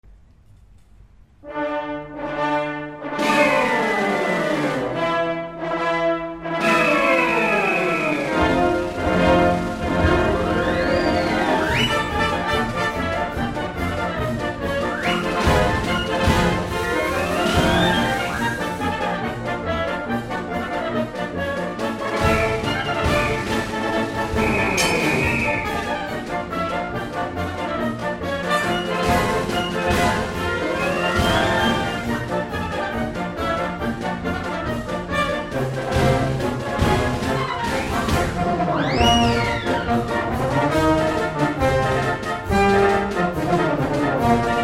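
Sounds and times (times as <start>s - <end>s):
circus march music: 1.4s - 44.6s.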